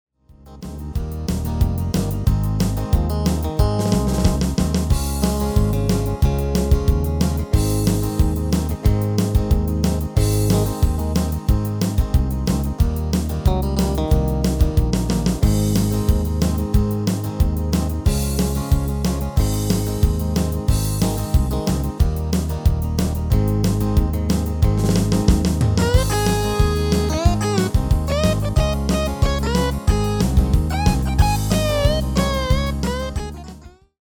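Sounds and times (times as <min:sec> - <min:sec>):
MIDI music: 0:00.4 - 0:34.0.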